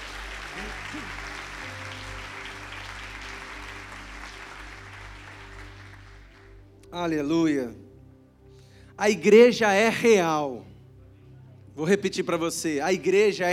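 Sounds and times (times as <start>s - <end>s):
audience applause: 0.0s - 6.6s
speech: 0.6s - 1.8s, 6.9s - 7.8s, 9.0s - 10.7s, 11.8s - 13.5s.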